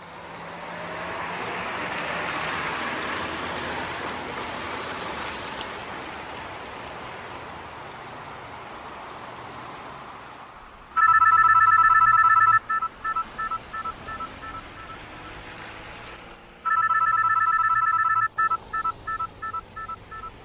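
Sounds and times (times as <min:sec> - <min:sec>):
electronic cell phone ringtone during a car drive: 0:10.9 - 0:15.7, 0:16.6 - 0:20.4.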